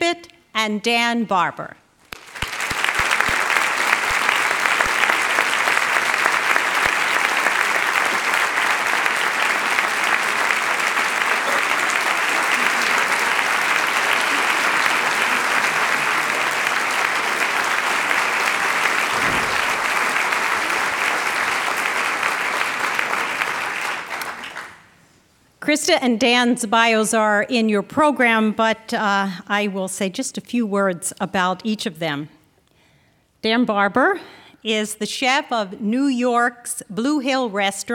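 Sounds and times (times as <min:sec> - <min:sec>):
speech: 0:00.6 - 0:01.8, 0:25.7 - 0:32.4, 0:33.4 - 0:37.9
audience applause welcoming two guests onto the stage: 0:02.1 - 0:24.8.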